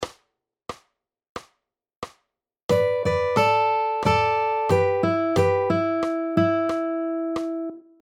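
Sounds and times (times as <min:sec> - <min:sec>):
pentatonic riffs: 0:02.7 - 0:07.8.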